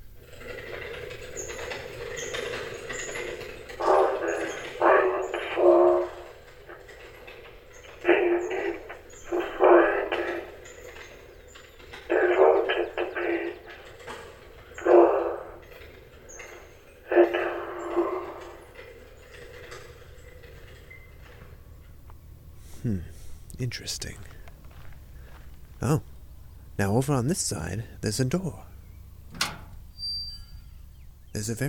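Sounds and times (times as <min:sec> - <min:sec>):
kinetic sculpture machinery reproducing a human voice: 0:01.4 - 0:21.4, 0:22.8 - 0:24.5, 0:26.8 - 0:28.8, 0:31.3 - 0:31.6
speech: 0:23.7 - 0:24.3, 0:25.8 - 0:26.0, 0:26.8 - 0:28.6, 0:31.4 - 0:31.6.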